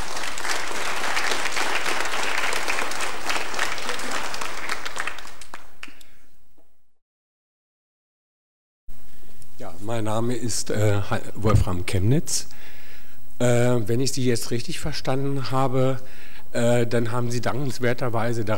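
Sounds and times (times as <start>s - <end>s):
audience applause after a talk: 0.0s - 6.0s
speech: 9.9s - 12.6s, 13.4s - 18.5s.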